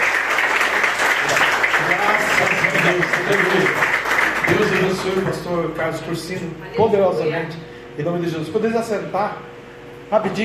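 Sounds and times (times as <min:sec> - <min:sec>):
audience applauding: 0:00.0 - 0:05.4
speech: 0:02.9 - 0:03.9, 0:04.5 - 0:09.5, 0:10.1 - 0:10.4.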